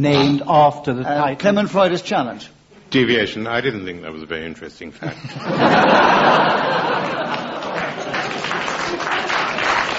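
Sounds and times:
speech: 0.0s - 7.4s
laughter: 5.0s - 9.6s
audience clapping: 6.2s - 9.9s.

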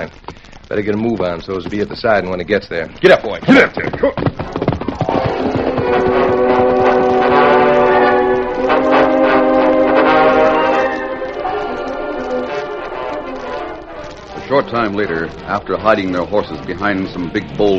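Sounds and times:
speech: 0.0s - 4.4s, 14.5s - 17.7s
work train horn: 5.1s - 14.2s.

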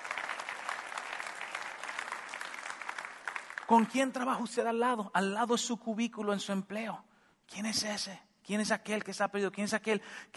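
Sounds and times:
audience applause: 0.0s - 3.9s
speech: 3.7s - 10.3s.

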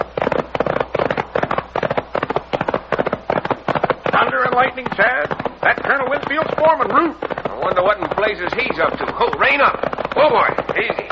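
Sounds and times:
gunshots: 0.0s - 11.1s
speech: 4.6s - 11.0s.

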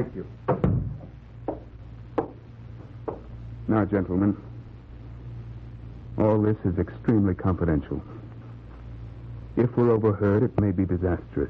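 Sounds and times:
speech: 0.0s - 0.5s, 3.7s - 4.5s, 6.2s - 8.2s, 9.6s - 11.4s
low hum: 0.0s - 11.4s
door being closed: 0.5s - 2.4s.

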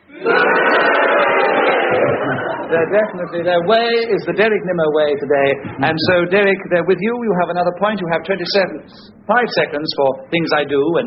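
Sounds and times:
large audience cheering and booing a challenge: 0.0s - 4.4s
laughter: 0.1s - 6.2s
speech: 2.7s - 11.0s.

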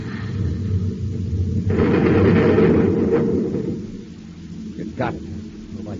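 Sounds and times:
low rumble: 0.0s - 5.9s
atom cannon shot and explosion: 1.6s - 4.0s.

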